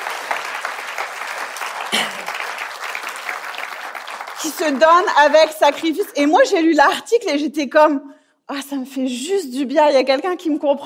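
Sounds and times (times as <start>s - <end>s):
church audience applauding all the mothers: 0.0s - 6.4s
speech: 4.4s - 10.8s.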